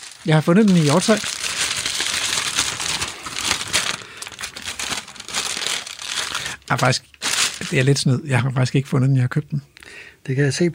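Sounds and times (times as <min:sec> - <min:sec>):
sack being opened crinkling: 0:00.0 - 0:08.0
speech: 0:00.2 - 0:01.4, 0:06.7 - 0:10.7.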